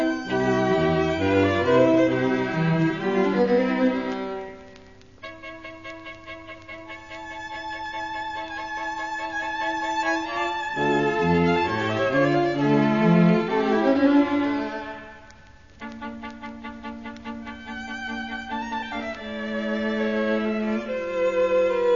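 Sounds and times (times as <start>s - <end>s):
string quartet playing in C major: 0.0s - 21.9s.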